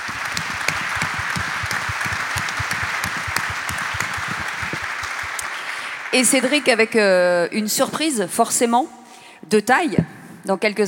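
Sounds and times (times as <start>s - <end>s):
audience applause: 0.0s - 6.9s
speech: 6.1s - 10.8s.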